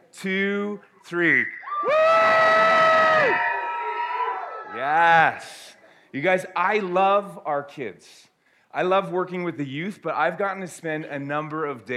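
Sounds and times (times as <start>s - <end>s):
speech: 0.2s - 3.5s, 4.8s - 11.9s
children cheering loudly: 1.7s - 4.8s.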